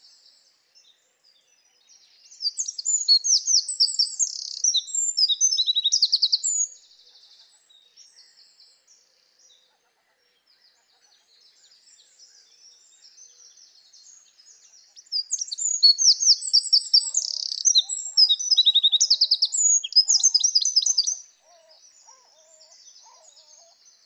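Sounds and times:
Eurasian wren Troglodytes troglodytes singing: 1.7 - 6.9, 11.6 - 24.0.

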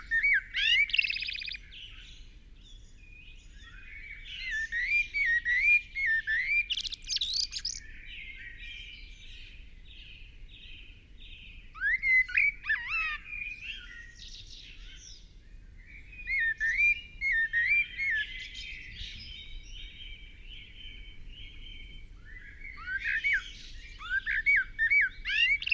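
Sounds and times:
Common blackbird singing whistled phrases: 0.0 - 25.7.

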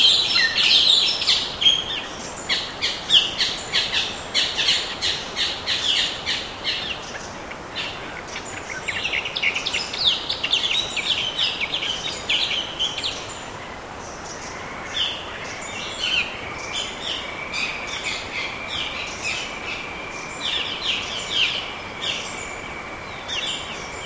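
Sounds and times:
bird chirps and twitters: 0.0 - 24.0.

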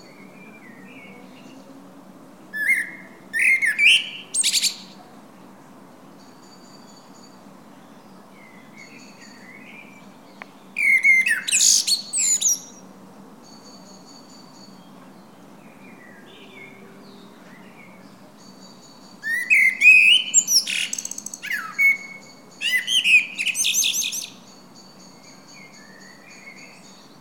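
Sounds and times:
common blackbird singing fluty phrases: 2.5 - 5.0, 6.3 - 12.8, 13.4 - 27.1.

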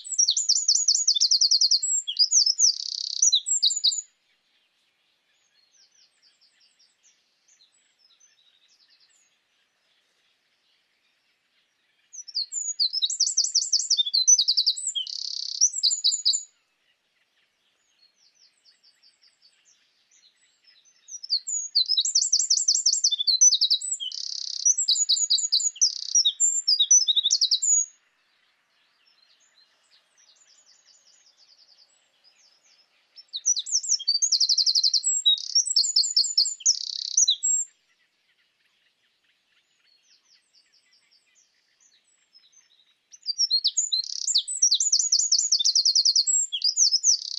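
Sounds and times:
Eurasian wren singing: 0.0 - 4.2, 12.0 - 16.6, 17.7 - 37.7, 39.6 - 47.3.

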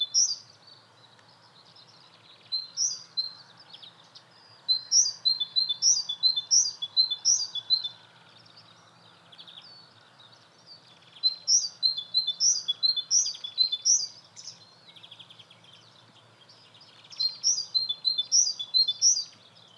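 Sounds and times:
great tit calling: 0.0 - 0.6, 1.8 - 3.8, 4.4 - 8.0, 10.8 - 19.7.

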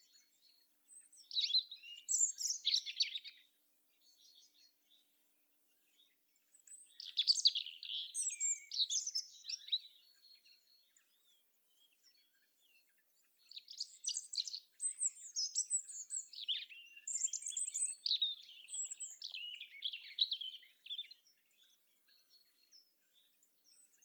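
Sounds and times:
European robin song: 0.0 - 24.0.

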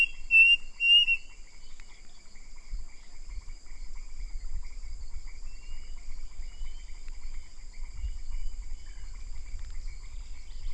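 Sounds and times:
bird chirping: 0.0 - 10.7.

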